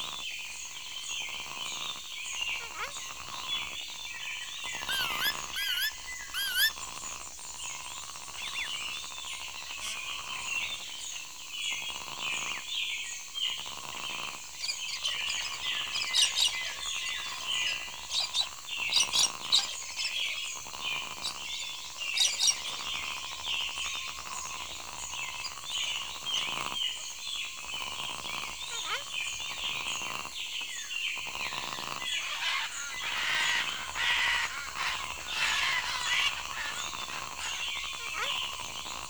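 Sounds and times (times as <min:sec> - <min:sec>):
forest wildlife: 0:00.0 - 0:39.0.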